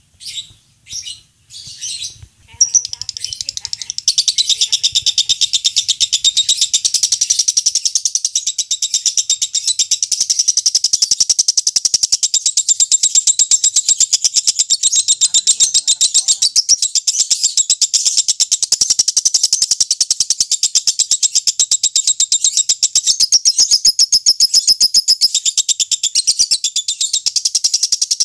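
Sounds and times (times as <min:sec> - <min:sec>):
lovebird calling: 0:00.2 - 0:28.2.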